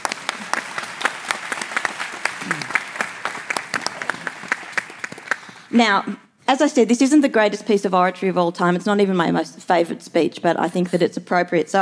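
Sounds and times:
audience applause: 0:00.0 - 0:05.6
speech: 0:05.7 - 0:11.8.

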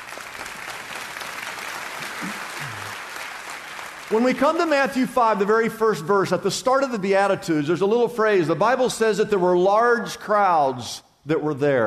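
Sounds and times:
audience clapping: 0:00.0 - 0:05.6
speech: 0:04.1 - 0:11.8.

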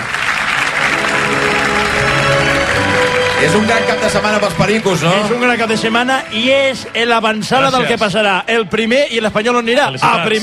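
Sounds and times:
crowd applauding: 0:00.0 - 0:08.6
speech: 0:03.4 - 0:10.4.

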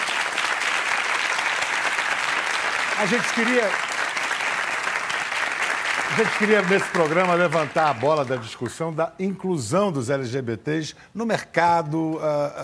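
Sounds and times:
audience applause: 0:00.0 - 0:08.7
speech: 0:03.0 - 0:03.9, 0:06.2 - 0:12.6.

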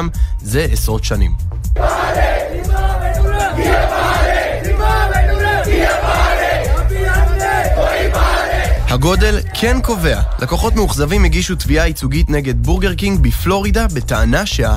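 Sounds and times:
speech: 0:00.0 - 0:02.2, 0:08.9 - 0:14.7
crowd of protesters marching in Colombo: 0:01.8 - 0:08.9.

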